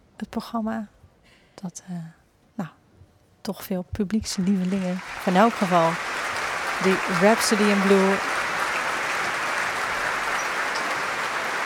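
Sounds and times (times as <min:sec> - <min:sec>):
speech: 0:00.2 - 0:01.0, 0:01.6 - 0:02.8, 0:03.4 - 0:08.4
concert hall audience applause: 0:04.4 - 0:11.6.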